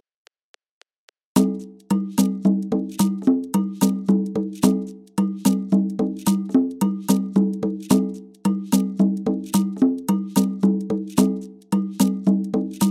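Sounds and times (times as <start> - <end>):
Latin American rhythms at 110 bpm: 1.4 - 12.8.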